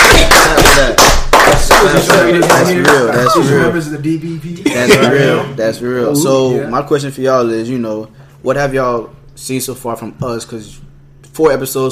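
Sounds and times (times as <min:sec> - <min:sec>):
people clapping: 0:00.0 - 0:03.7
speech: 0:01.8 - 0:11.9.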